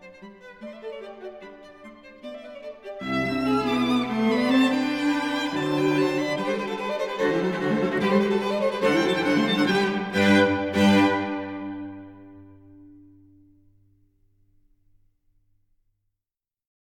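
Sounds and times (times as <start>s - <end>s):
string quartet playing in G minor: 0.0s - 13.1s.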